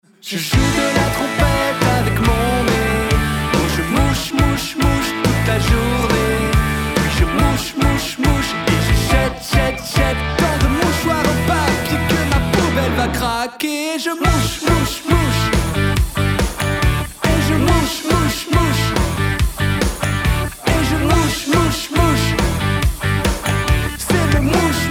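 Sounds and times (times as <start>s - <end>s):
rock music: 0.6s - 13.4s, 14.2s - 24.9s.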